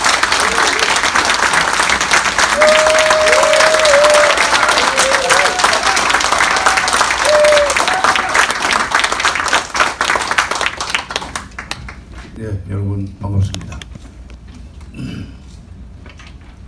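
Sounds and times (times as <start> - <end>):
large audience applause welcoming a speaker: 0.0 - 12.1.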